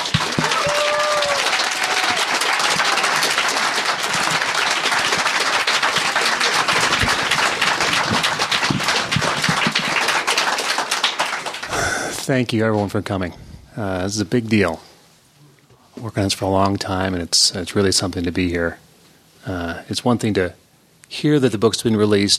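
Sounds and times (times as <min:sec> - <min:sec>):
audience applause welcoming author Juan F. Thompson at a book reading event: 0:00.0 - 0:12.0
speech: 0:12.3 - 0:14.9, 0:16.0 - 0:18.8, 0:19.4 - 0:22.3.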